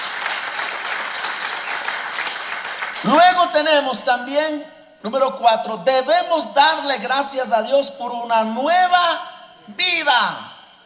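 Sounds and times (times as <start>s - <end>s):
audience applause: 0.0s - 3.1s
speech: 3.0s - 10.5s.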